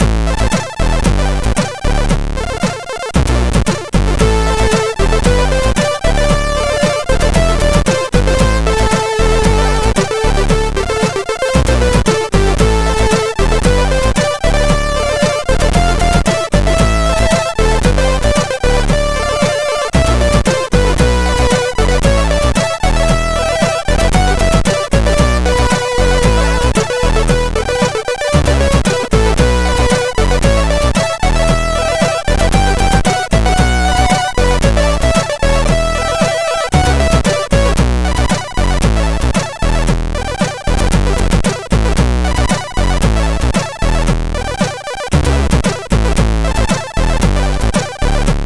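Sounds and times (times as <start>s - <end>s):
intro song on MOS6581R4 SID chip: 0.2s - 48.3s.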